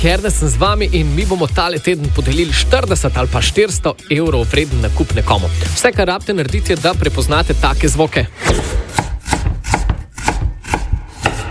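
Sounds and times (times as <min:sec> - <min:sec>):
speech: 0:00.0 - 0:08.9
knife chopping garlic on a wooden cutting board: 0:08.4 - 0:11.4.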